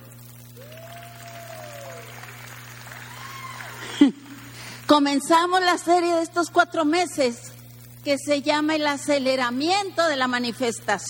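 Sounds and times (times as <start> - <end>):
low electrical hum: 0.0 - 11.0
audience applause: 0.5 - 4.8
whoops or whistles: 0.6 - 3.9
laughter: 3.6 - 4.5
speech: 4.9 - 11.0.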